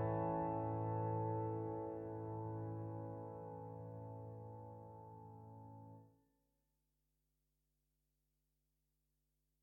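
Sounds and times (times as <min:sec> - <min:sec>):
solo piano: 0:00.0 - 0:06.0.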